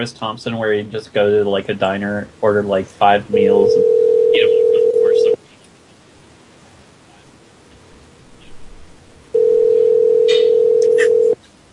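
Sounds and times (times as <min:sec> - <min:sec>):
speech: 0:00.0 - 0:04.6
telephone ringing: 0:03.4 - 0:05.4, 0:09.4 - 0:11.4.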